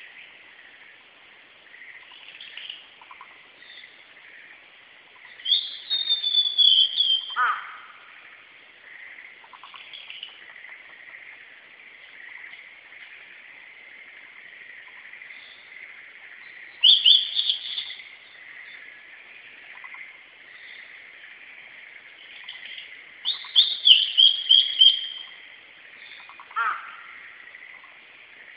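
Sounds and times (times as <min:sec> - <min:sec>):
blue-and-white flycatcher whistled song: 0:05.4 - 0:07.4, 0:16.8 - 0:18.0, 0:23.2 - 0:25.4.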